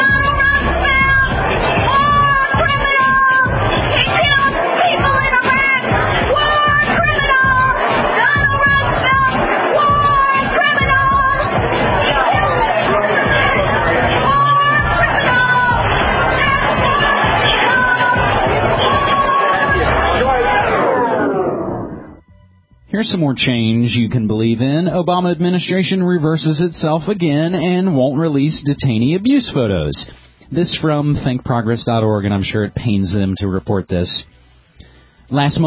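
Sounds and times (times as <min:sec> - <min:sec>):
crowd of protesters heckling and shouting: 0:00.0 - 0:22.1
people whooping: 0:04.1 - 0:22.1
speech: 0:23.0 - 0:34.4, 0:35.3 - 0:35.6.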